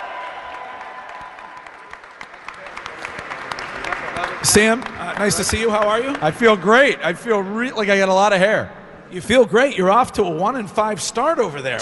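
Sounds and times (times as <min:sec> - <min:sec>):
round of applause: 0:00.0 - 0:06.9
speech: 0:04.4 - 0:11.7.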